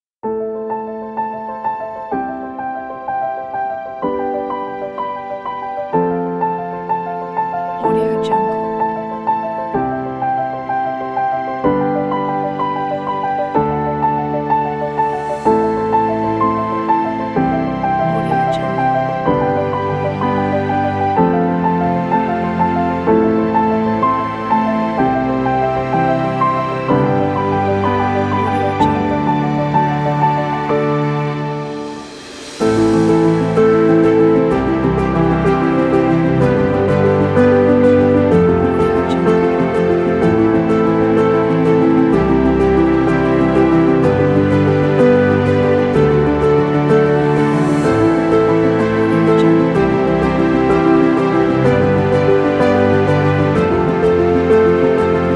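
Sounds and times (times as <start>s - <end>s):
classical piano music: 0.2s - 55.3s.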